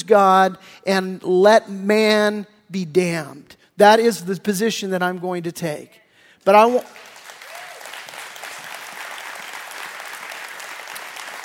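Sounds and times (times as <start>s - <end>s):
speech: 0.1s - 7.1s
large audience applause: 7.0s - 11.4s.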